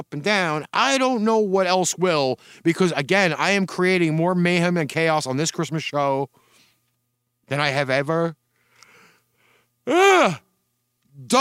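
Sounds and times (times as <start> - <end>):
speech: 0.0 - 6.4, 7.5 - 8.4, 9.8 - 10.4, 11.2 - 11.3
faint breath: 2.4 - 2.7, 6.3 - 6.9, 8.5 - 9.8
person yawning: 9.9 - 10.4.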